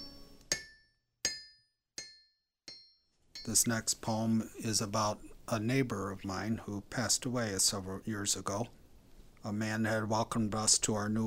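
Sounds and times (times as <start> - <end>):
hammer striking steel anvil: 0.0 - 3.7
speech: 3.4 - 8.8, 9.4 - 11.2.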